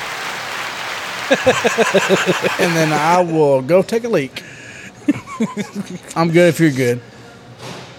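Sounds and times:
applause button sound effect: 0.0s - 3.2s
laughter: 1.3s - 3.7s, 4.4s - 6.5s
speech: 1.3s - 7.1s.

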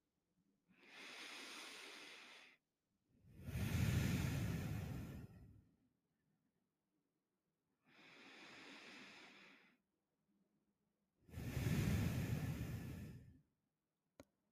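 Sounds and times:
slow deep breathing: 0.7s - 5.8s, 7.8s - 9.9s, 11.3s - 13.5s.

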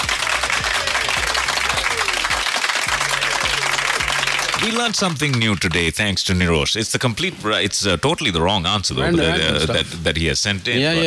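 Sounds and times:
round of applause: 0.0s - 6.0s
speech: 4.6s - 11.0s.

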